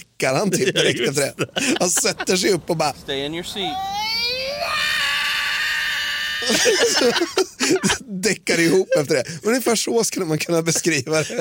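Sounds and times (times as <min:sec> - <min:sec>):
speech: 0:00.0 - 0:04.0, 0:06.5 - 0:11.3
laughter: 0:00.5 - 0:09.2
person imitating a child's wailing roar: 0:03.6 - 0:06.5.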